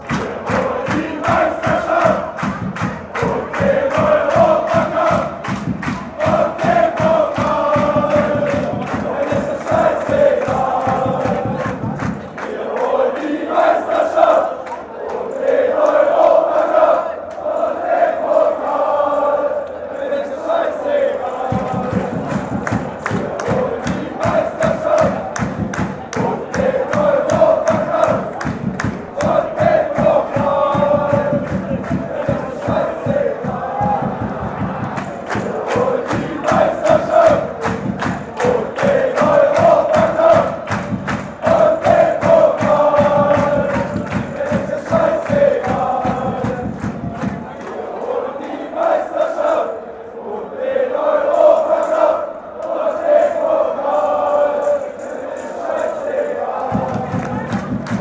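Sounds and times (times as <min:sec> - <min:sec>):
football fans chanting: 0:00.0 - 0:57.9.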